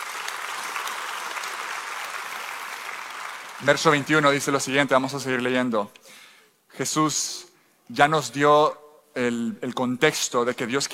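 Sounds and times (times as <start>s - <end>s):
audience applauding: 0.0s - 4.7s
speech: 3.6s - 6.2s, 6.8s - 10.9s.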